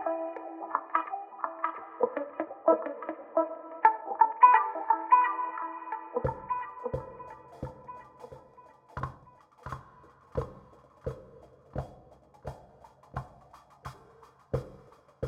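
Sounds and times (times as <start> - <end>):
guitar: 0.0 - 11.2.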